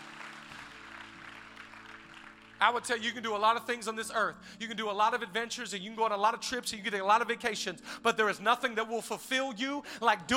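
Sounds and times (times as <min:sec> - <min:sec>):
audience clapping: 0:00.0 - 0:03.0
speech: 0:02.6 - 0:10.3.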